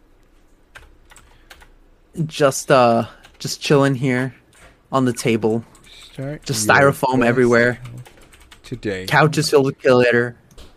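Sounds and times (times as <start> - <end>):
typing on a keyboard: 0.7 - 1.7, 7.7 - 8.8
speech: 2.2 - 8.1, 8.7 - 10.4.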